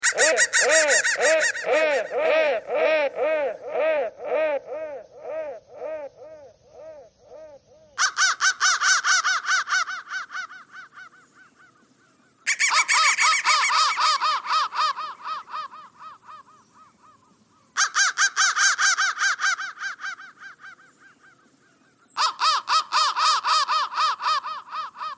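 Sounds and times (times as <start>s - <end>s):
crow cawing in raspy bursts: 0.0s - 11.8s, 12.5s - 21.5s, 22.2s - 25.1s.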